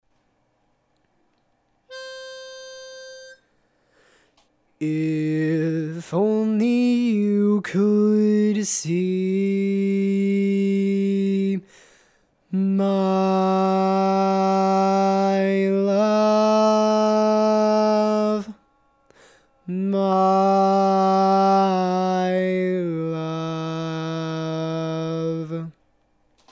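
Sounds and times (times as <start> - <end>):
baritone barbershop tags: 4.8 - 11.7, 12.5 - 18.6, 19.6 - 25.8.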